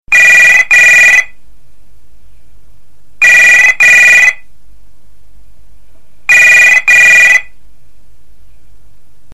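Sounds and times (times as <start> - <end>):
old phone ringtones: 0.1 - 1.4, 3.2 - 4.5, 6.3 - 7.5.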